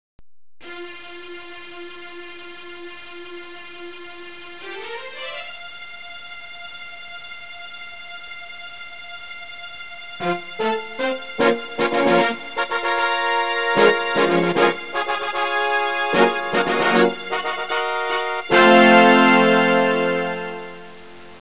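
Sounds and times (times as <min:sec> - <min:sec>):
fanfare: 0:10.2 - 0:20.9.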